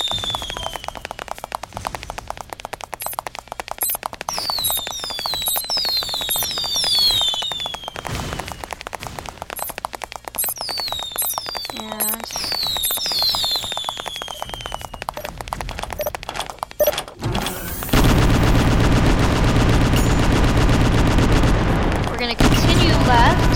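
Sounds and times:
high falling whistles: 0.0s - 1.3s, 3.8s - 8.7s, 10.4s - 15.2s
bombs exploding in crackling pops in a video game: 0.0s - 18.2s, 19.3s - 23.5s.

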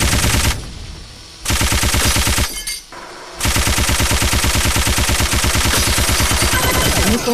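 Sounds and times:
machine gun firing: 0.0s - 0.6s, 1.5s - 2.7s, 3.4s - 7.3s.

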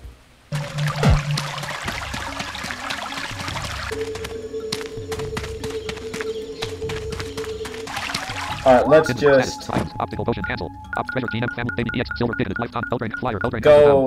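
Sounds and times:
rain falling: 0.3s - 8.9s
speech: 8.7s - 14.0s.

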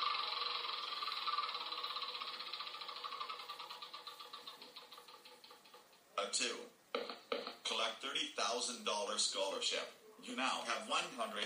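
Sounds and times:
spinner whirring in a mobile board game within a video game: 0.0s - 6.0s
speech: 6.2s - 6.8s, 7.8s - 11.4s.

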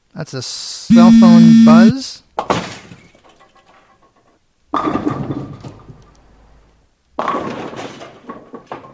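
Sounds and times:
speech: 0.3s - 2.2s
bowling ball hitting pins: 2.4s - 6.0s, 7.2s - 8.9s.

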